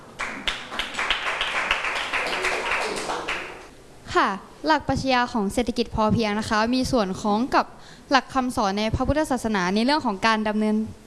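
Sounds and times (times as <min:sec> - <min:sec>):
classroom applause for a student: 0:00.0 - 0:03.7
speech: 0:04.1 - 0:11.0.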